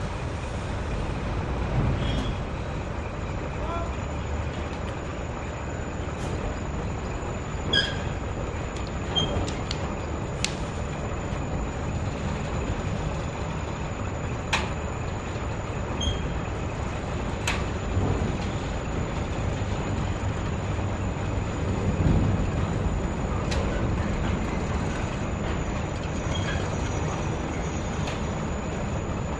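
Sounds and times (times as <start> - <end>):
industrial port ambience: 0.0 - 29.3.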